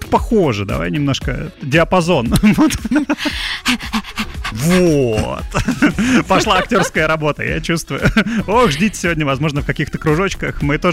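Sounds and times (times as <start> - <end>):
speech: 0.1 - 10.9
laughter: 2.3 - 9.2
person imitating a dog panting: 2.8 - 6.9.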